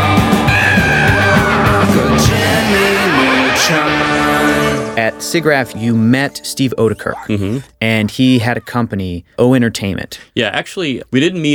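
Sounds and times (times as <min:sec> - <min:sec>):
animated TV show theme song: 0:00.0 - 0:07.7
speech: 0:05.3 - 0:11.5.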